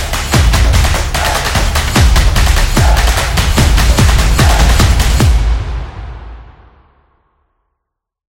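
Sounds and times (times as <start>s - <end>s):
energetic drumming: 0.0s - 6.3s.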